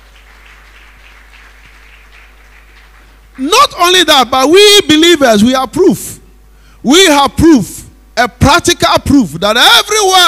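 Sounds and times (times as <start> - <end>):
audience clapping: 0.0 - 3.6
speech: 3.4 - 6.2, 6.8 - 10.2.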